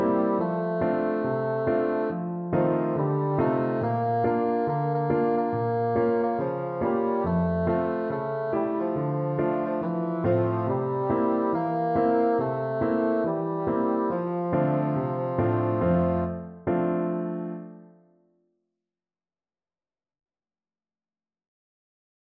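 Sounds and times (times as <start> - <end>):
bassoon playing: 0.0 - 16.6.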